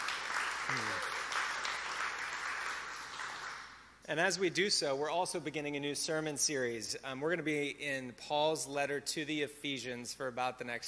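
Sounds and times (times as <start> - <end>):
audience applause: 0.0 - 3.7
person whooping: 0.7 - 1.2
speech: 4.1 - 10.8.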